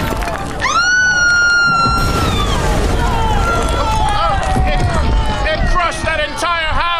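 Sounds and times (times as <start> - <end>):
huge statue cracking and collapsing in the wind: 0.0 - 5.5
panicked crowd screaming: 0.0 - 6.9.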